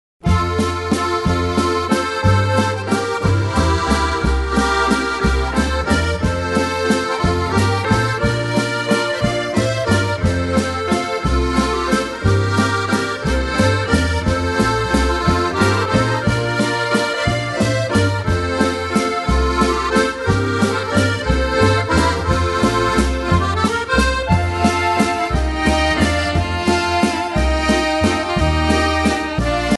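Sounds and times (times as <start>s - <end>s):
button box group playing a waltz medley: 0.2s - 29.7s.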